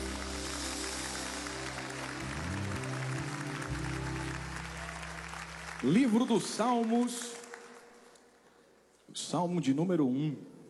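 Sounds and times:
audience applause: 0:00.0 - 0:08.2
speech: 0:05.8 - 0:07.3, 0:09.2 - 0:10.5.

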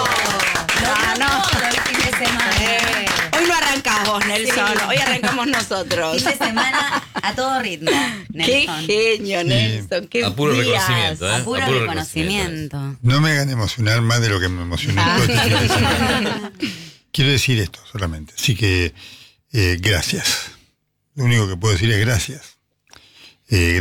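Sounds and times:
loud steady applause of many hands: 0:00.0 - 0:06.6
chuckling and laughter: 0:00.0 - 0:12.3, 0:14.6 - 0:17.0
excited voices: 0:00.0 - 0:16.9
speech: 0:04.1 - 0:20.5, 0:21.2 - 0:22.5, 0:23.5 - 0:23.7.

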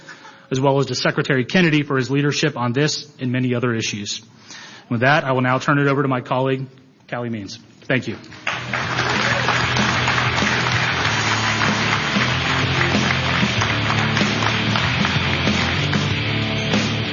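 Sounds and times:
speech: 0:00.5 - 0:09.0
audience applause: 0:08.3 - 0:16.4.

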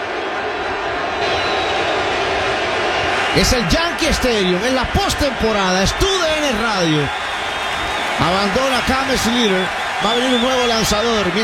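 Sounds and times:
stadium crowd ovation: 0:00.0 - 0:11.4
speech: 0:03.4 - 0:07.3, 0:08.2 - 0:11.4.

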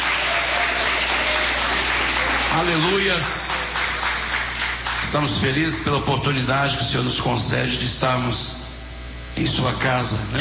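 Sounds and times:
church congregation clapping: 0:00.0 - 0:05.4
speech: 0:02.6 - 0:03.5, 0:05.1 - 0:08.6, 0:09.4 - 0:10.3.

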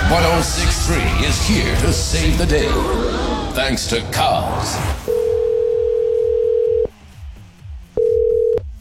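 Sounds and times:
speech: 0:00.1 - 0:05.2
telephone dial tone: 0:05.2 - 0:06.9, 0:08.0 - 0:08.7.

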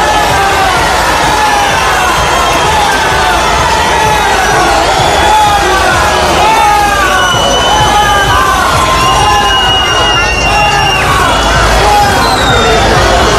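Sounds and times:
crowd chanting in the Plaza de España: 0:00.0 - 0:13.3.

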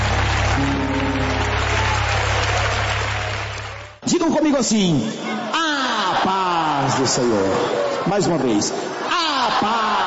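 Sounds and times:
crowd clapping hands: 0:00.0 - 0:04.2
speech: 0:00.6 - 0:00.8, 0:04.2 - 0:05.4, 0:06.9 - 0:09.0
laughter: 0:05.5 - 0:10.0.

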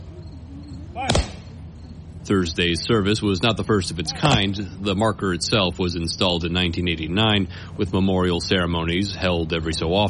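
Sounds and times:
speech: 0:01.0 - 0:01.3, 0:02.2 - 0:10.0
rifle volley fired at a military memorial ceremony: 0:01.0 - 0:01.6, 0:04.0 - 0:04.7.

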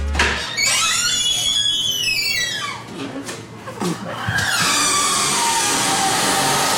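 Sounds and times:
squeaky bathroom door opening and closing: 0:00.2 - 0:02.9, 0:04.2 - 0:06.6.

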